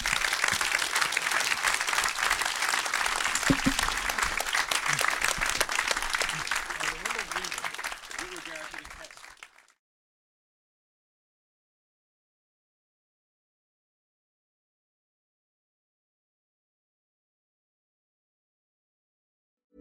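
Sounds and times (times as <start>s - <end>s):
theatre audience applause: 0.0s - 9.7s.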